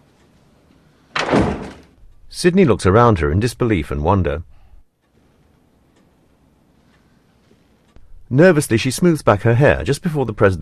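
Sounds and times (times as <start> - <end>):
door closing: 1.1 - 2.0
speech: 2.3 - 4.5, 8.3 - 10.6.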